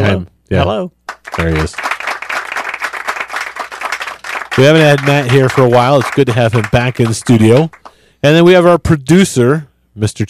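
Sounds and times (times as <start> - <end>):
speech: 0.2 - 1.9, 4.6 - 10.2
light audience applause: 1.1 - 8.0.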